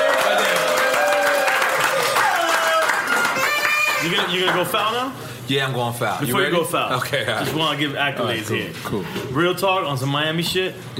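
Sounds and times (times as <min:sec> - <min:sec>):
audience cheering and applauding: 0:00.0 - 0:04.8
speech: 0:04.0 - 0:10.9.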